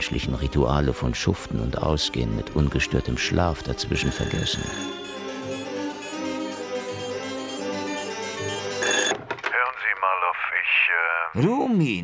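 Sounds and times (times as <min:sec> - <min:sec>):
speech: 0:00.0 - 0:05.1, 0:11.4 - 0:12.0
telephone ringing: 0:04.0 - 0:10.2.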